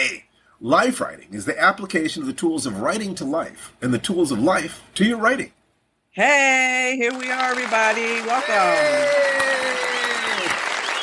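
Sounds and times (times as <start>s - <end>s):
speech: 0.1s - 5.6s, 6.2s - 9.4s
applause sound effect from a crowd: 7.1s - 11.0s.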